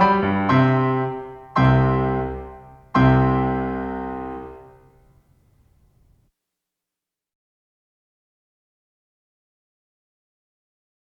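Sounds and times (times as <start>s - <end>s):
sonatina in C major allegretto: 0.0s - 6.1s.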